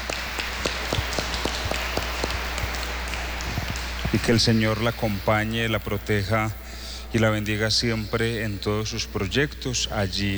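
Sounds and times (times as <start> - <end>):
applause: 0.0 - 5.5
speech: 4.1 - 10.3.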